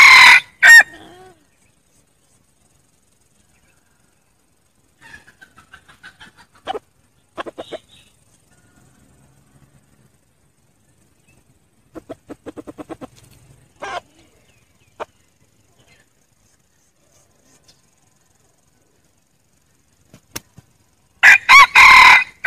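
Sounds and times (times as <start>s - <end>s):
red junglefowl crowing: 0.0s - 1.2s, 8.5s - 9.7s, 21.2s - 22.4s.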